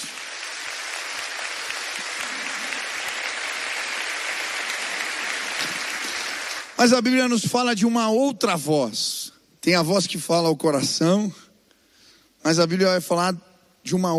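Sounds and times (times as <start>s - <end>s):
audience applause: 0.0s - 6.8s
speech: 6.8s - 11.4s, 12.4s - 14.1s.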